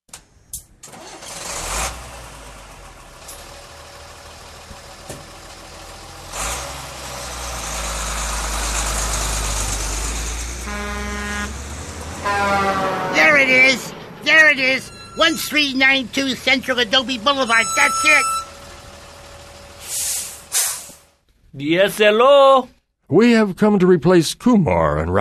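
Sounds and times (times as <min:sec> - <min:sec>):
pickup truck engine starting and rumbling: 0:00.1 - 0:21.5
horn honk: 0:10.6 - 0:15.6, 0:17.4 - 0:18.6
speech: 0:14.5 - 0:18.4, 0:21.6 - 0:25.1.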